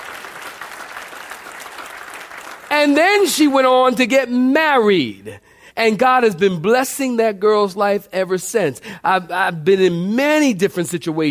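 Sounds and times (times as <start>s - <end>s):
audience clapping: 0.0s - 3.3s
speech: 2.7s - 11.2s.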